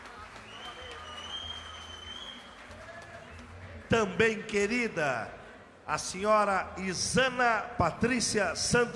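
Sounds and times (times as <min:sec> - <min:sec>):
round of applause: 0:00.0 - 0:04.1
speech: 0:03.9 - 0:08.9.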